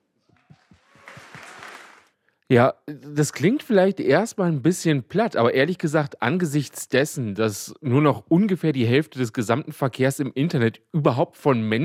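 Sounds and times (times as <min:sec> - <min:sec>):
audience applause: 0:00.4 - 0:02.1
speech: 0:02.5 - 0:11.8.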